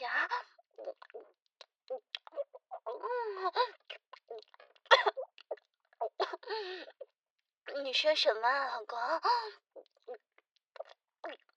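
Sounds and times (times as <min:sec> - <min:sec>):
person chewing food: 0:00.7 - 0:03.1, 0:03.8 - 0:06.2, 0:09.7 - 0:11.5
speech: 0:07.9 - 0:09.6.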